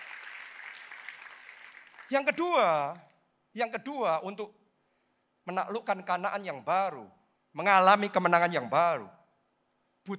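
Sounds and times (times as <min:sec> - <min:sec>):
audience clapping: 0:00.0 - 0:02.8
speech: 0:02.1 - 0:04.6, 0:05.5 - 0:09.2.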